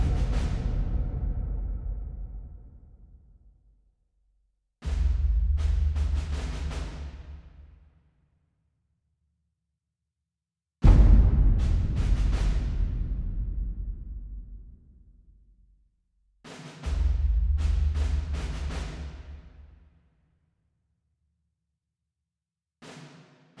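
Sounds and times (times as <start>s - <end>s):
militant drums: 0.0s - 2.8s, 4.8s - 7.4s, 10.8s - 14.8s, 16.5s - 19.6s.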